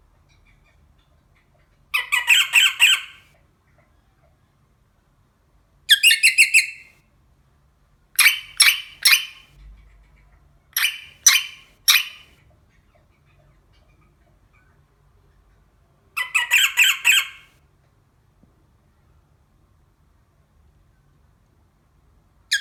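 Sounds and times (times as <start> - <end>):
rosella parrot voice: 0.3 - 3.3, 5.9 - 6.9, 8.2 - 9.6, 10.8 - 14.1, 16.2 - 17.6.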